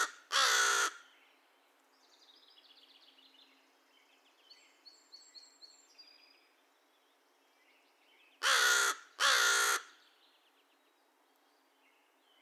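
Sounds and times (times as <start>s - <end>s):
American crow uttering raspy caws: 0.0s - 1.0s, 8.4s - 10.0s.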